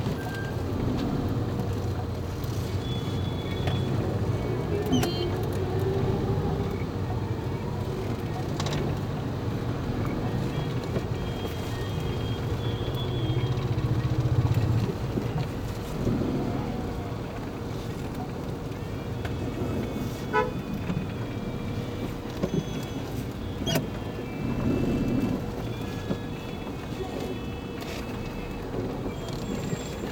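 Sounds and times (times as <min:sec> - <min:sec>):
vehicle ride back in Boudha Nepal: 0:00.0 - 0:30.0.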